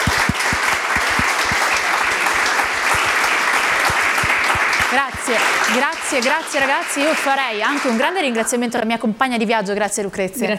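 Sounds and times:
crowd applauding: 0.0 - 8.6
speech: 5.0 - 10.5.

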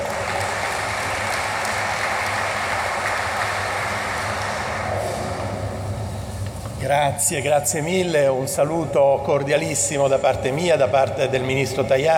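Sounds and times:
audience applause: 0.0 - 5.7
speech: 6.9 - 12.1.

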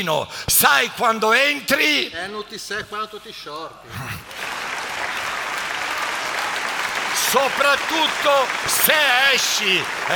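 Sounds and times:
speech: 0.0 - 4.4, 7.3 - 10.1
audience applause: 4.3 - 10.1.

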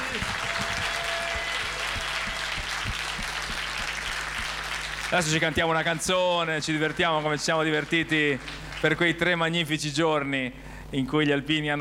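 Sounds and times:
audience applause: 0.0 - 6.0, 6.6 - 9.2
low hum: 0.0 - 6.1
speech: 5.1 - 11.8.

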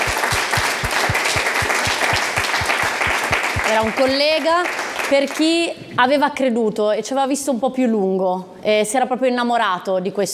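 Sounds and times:
steady rhythmic beat of low thumps: 0.0 - 4.4
audience applause for a remembered colleague at a gathering: 0.0 - 5.4
speech: 3.7 - 10.3.

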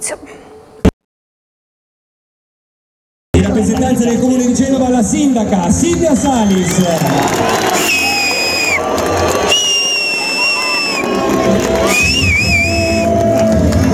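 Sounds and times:
speech: 0.0 - 0.3, 3.6 - 8.0
crowd whistling in disapproval: 5.9 - 13.8.

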